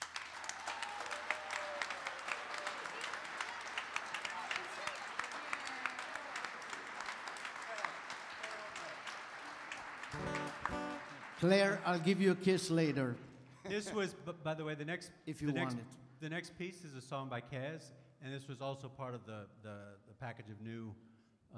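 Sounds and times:
concert audience round of applause: 0:00.0 - 0:13.2
speech: 0:11.4 - 0:21.5.

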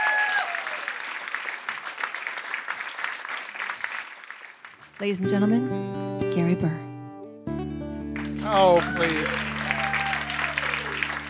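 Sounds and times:
audience applause: 0:00.0 - 0:05.0, 0:08.2 - 0:11.2
speech: 0:05.0 - 0:06.9, 0:08.5 - 0:09.5.

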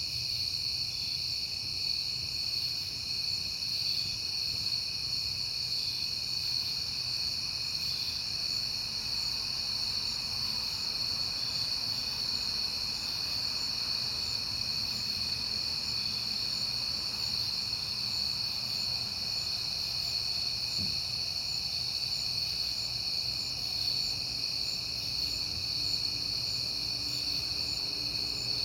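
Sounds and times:
crickets trilling in a chorus: 0:00.0 - 0:28.6.

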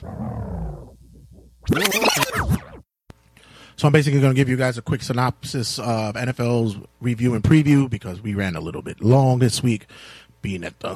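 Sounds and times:
tape-rewind sound effect: 0:00.0 - 0:02.8
speech: 0:01.7 - 0:02.7, 0:03.8 - 0:10.9.

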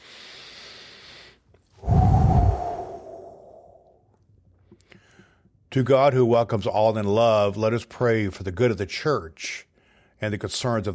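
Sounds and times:
heavy exhale with a low rumble before a prayer: 0:00.0 - 0:03.9
person breathing in before a prayer: 0:00.0 - 0:03.9
speech: 0:05.8 - 0:10.9.

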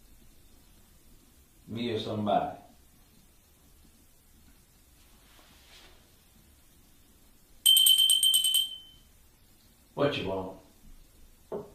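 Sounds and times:
speech: 0:01.7 - 0:02.6, 0:10.0 - 0:10.6
bell ringing: 0:07.6 - 0:09.1.

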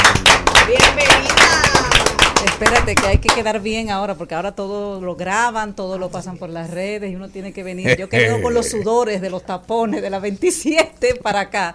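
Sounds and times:
audience applause: 0:00.0 - 0:02.9
speech: 0:02.6 - 0:11.7.

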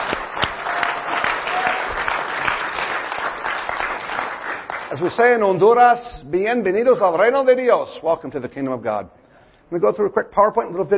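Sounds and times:
church congregation applause: 0:00.0 - 0:05.6
speech: 0:04.9 - 0:10.9.

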